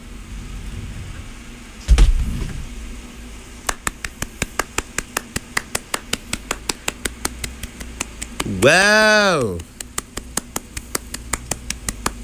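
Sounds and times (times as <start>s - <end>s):
dull thump: 1.9s - 2.7s
one person clapping in a mock standing ovation: 3.7s - 12.2s
speech: 8.6s - 9.7s.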